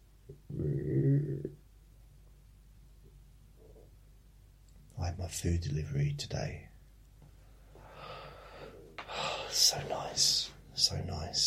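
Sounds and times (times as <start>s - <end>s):
stomach rumbling: 0.3s - 1.6s
speech: 5.2s - 6.7s, 9.6s - 11.4s.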